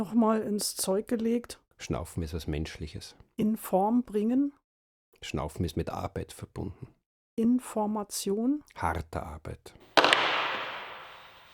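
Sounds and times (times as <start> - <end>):
speech: 0.0 - 4.6, 5.2 - 9.9
hammer strike: 10.0 - 11.5.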